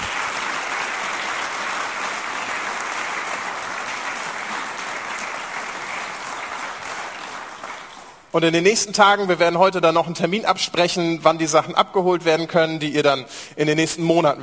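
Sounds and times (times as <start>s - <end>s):
audience applause: 0.0s - 8.3s
speech: 8.4s - 14.4s.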